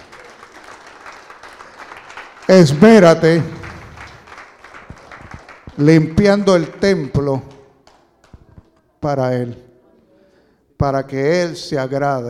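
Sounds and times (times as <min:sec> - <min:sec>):
audience applause: 0:00.0 - 0:06.8
speech: 0:02.5 - 0:03.6, 0:05.8 - 0:07.5, 0:09.0 - 0:09.6, 0:10.8 - 0:12.2.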